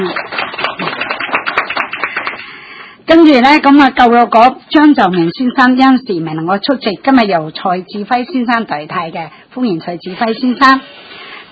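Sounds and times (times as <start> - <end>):
speech: 0.0 - 0.5, 3.1 - 11.4
audience applause: 0.0 - 2.5.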